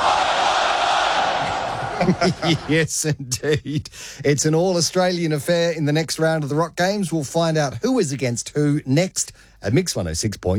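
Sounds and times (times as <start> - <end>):
large crowd shouting a cheer in unison: 0.0 - 2.8
laughter: 0.9 - 4.1
speech: 2.0 - 10.5.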